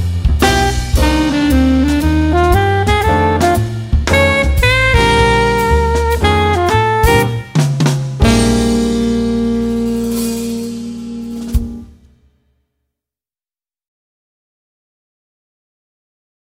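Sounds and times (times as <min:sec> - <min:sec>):
jazz alto saxophone solo: 0:00.4 - 0:12.1.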